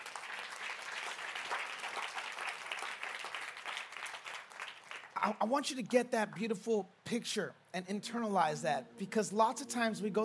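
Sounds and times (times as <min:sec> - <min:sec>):
audience clapping hands: 0:00.0 - 0:05.5
speech: 0:05.2 - 0:10.2.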